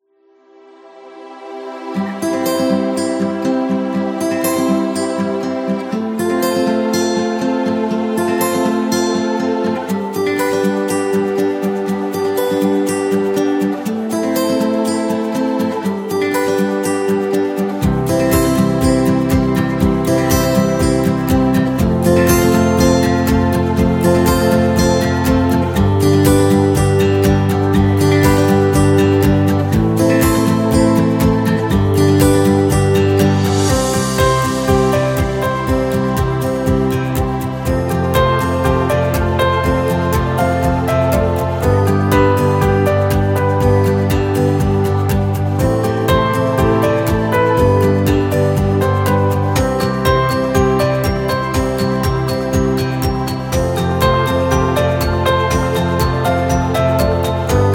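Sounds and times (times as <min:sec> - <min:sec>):
upbeat uplifting guitar music: 0:01.8 - 0:57.7.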